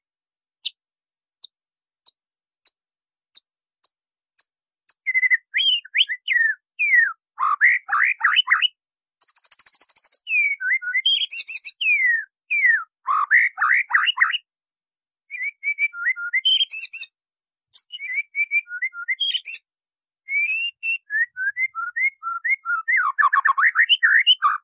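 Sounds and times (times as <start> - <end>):
white-rumped shama whistling song: 4.9 - 8.5, 9.9 - 14.4, 15.3 - 17.1, 17.8 - 19.6, 20.3 - 24.6.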